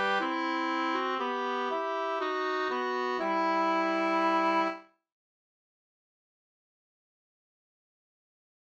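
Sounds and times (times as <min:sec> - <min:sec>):
folk song melody: 0:00.0 - 0:04.9.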